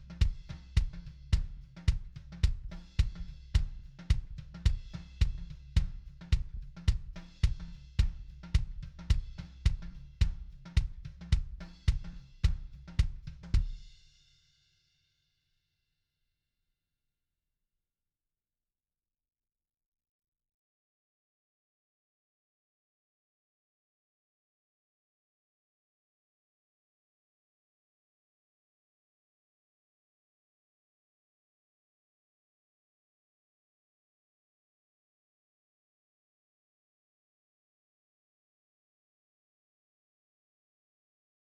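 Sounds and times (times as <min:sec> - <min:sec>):
kick drum: 0:00.0 - 0:13.9.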